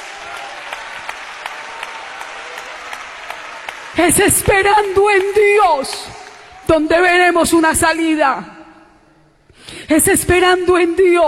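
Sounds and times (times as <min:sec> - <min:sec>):
audience applause: 0:00.0 - 0:06.7
speech: 0:04.0 - 0:08.5, 0:09.9 - 0:11.2.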